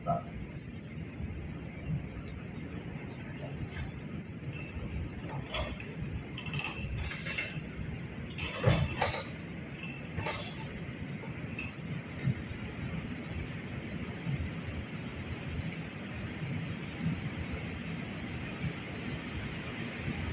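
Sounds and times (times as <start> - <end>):
air being vented from pipeline by aeration system: 0.0 - 20.3.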